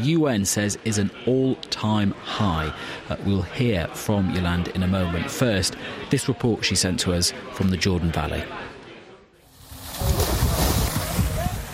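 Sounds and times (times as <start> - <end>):
speech: 0.0 - 8.7
Israeli settlers splashing in a pool at a Jordan Valley archaeological site: 9.6 - 11.7.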